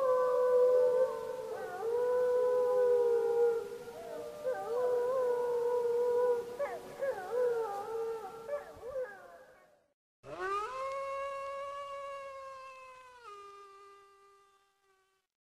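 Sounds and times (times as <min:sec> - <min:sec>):
wolf howling: 0:00.0 - 0:09.7, 0:10.3 - 0:12.1.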